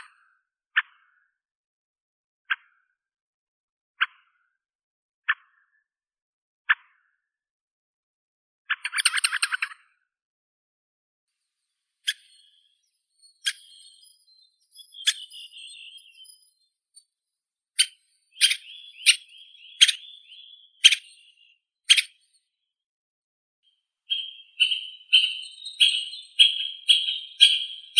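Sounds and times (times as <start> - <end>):
white-backed woodpecker Dendrocopos leucotos: 8.8 - 9.7, 12.1 - 16.6, 17.8 - 22.3, 24.1 - 27.9.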